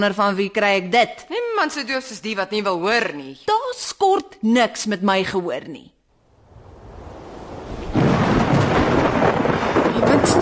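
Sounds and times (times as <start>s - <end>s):
speech: 0.0s - 6.0s, 10.0s - 10.4s
thunder rolling: 6.3s - 10.4s.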